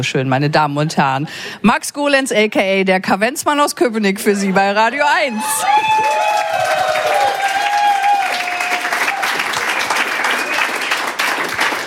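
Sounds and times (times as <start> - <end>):
speech: 0.0 - 6.8
audience applause: 5.6 - 11.8.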